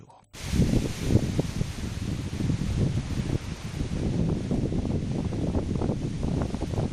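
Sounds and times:
strong wind blowing at Muras in the Serra do Xistral, Lugo: 0.4 - 6.9.

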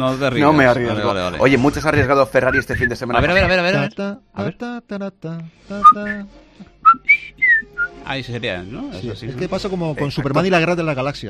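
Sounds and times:
speech: 0.0 - 11.2
person whistling a tune: 5.8 - 8.0.

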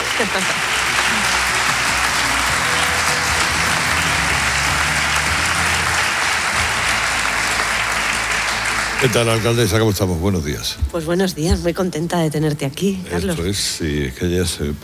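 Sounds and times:
audience applause: 0.0 - 10.7
speech: 0.2 - 1.3, 9.0 - 14.8.

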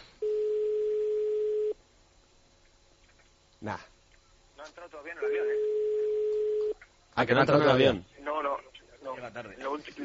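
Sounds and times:
quiet telephone line hiss: 0.0 - 0.2
electronic telephone ringing tone on an unanswered call: 0.2 - 1.8, 5.3 - 6.8
speech: 3.6 - 4.0, 4.6 - 5.8, 7.2 - 8.2, 9.2 - 10.0.

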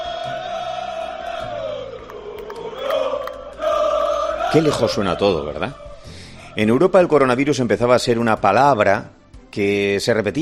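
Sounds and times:
football fans chanting and shouting in streets: 0.0 - 7.5
speech: 4.5 - 5.9, 6.6 - 10.4.

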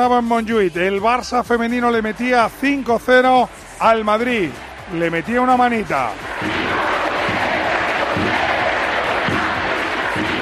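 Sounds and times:
speech: 0.0 - 6.6
football fans chanting in the stands: 5.9 - 10.4.

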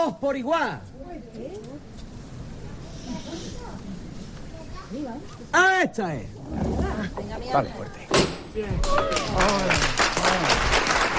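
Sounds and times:
speech: 0.0 - 1.9, 4.9 - 10.7
street crowd applause at procession on calle San Jerónimo: 8.8 - 11.1.

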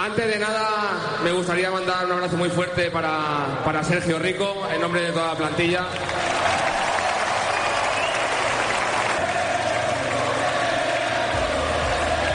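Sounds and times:
speech: 0.0 - 6.7
stadium crowd chanting a player's name: 6.4 - 12.3.

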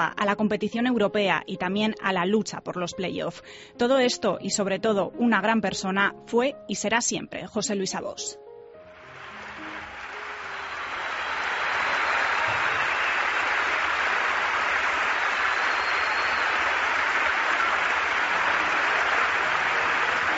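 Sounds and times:
speech: 0.0 - 8.5
crowd ovation: 9.0 - 20.3.

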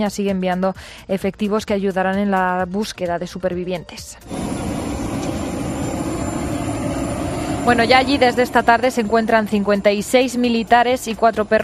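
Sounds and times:
speech: 0.0 - 4.6, 7.6 - 11.6
airplane engine roaring: 4.2 - 11.6.

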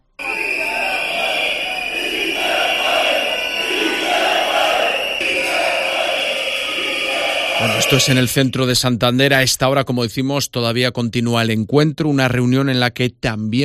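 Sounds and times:
large crowd of workers chanting a slogan in unison: 0.1 - 8.6
speech: 7.8 - 13.6.

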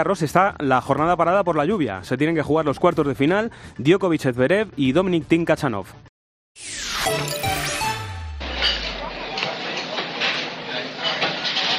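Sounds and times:
speech: 0.0 - 7.3
busy café bar ambience at coffee time in Madrid: 7.3 - 11.7.

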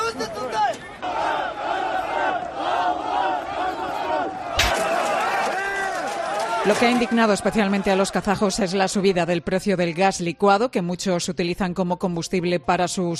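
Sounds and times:
large crowd of protesters shouting and chanting: 0.0 - 9.2
speech: 6.6 - 13.1.

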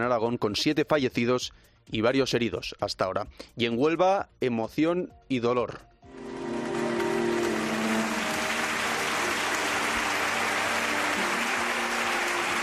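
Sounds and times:
speech: 0.0 - 5.9
heartfelt ovation at a funeral in Huelva: 6.2 - 12.6.

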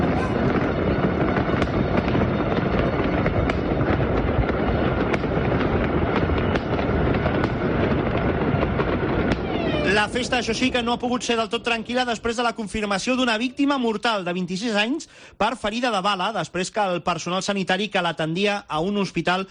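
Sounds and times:
fireworks across the neighbourhoods of Naples heard from a high point: 0.0 - 14.4
speech: 10.0 - 19.5.

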